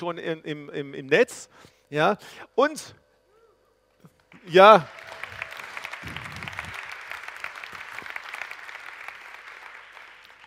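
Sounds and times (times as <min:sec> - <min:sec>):
speech: 0:00.0 - 0:03.0, 0:04.4 - 0:05.2, 0:06.0 - 0:06.2
audience applause: 0:04.4 - 0:10.4.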